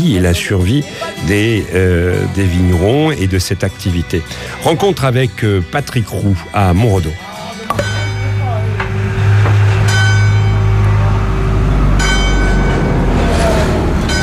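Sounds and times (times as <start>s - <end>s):
speech: 0.0s - 8.0s
sustained metallic ringing tones from a passing train: 6.9s - 13.4s
train on the railway beside National Road 113 at Montredon: 7.8s - 14.2s.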